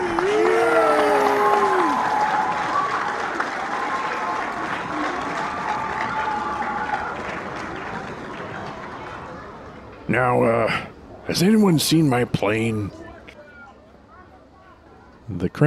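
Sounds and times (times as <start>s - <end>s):
crowd cheering and whooping: 0.0s - 8.0s
large crowd applauding: 0.0s - 9.6s
speech: 10.2s - 13.0s.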